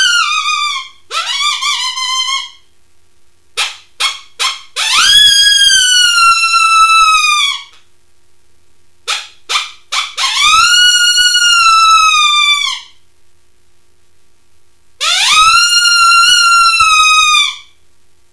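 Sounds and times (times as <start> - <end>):
coyote howling: 0.0 - 2.6, 3.6 - 7.8, 9.1 - 13.0, 15.0 - 17.8.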